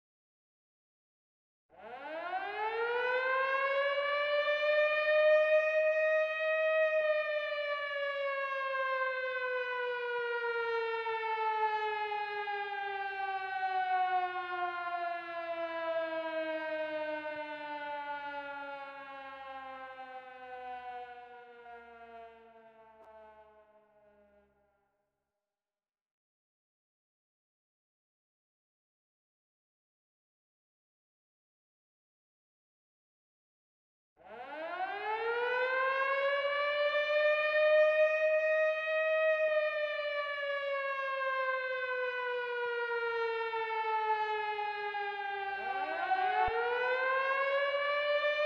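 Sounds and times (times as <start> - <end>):
air raid siren: 1.8 - 24.6, 34.2 - 48.4.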